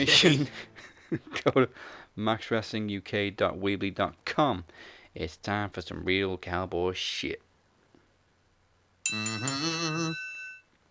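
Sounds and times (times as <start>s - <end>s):
speech: 0.0s - 7.5s, 9.1s - 10.2s
bell ringing: 9.1s - 10.7s.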